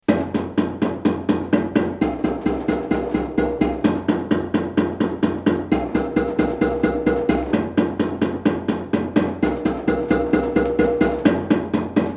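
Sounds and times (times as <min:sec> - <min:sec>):
bass: 0:00.0 - 0:12.1.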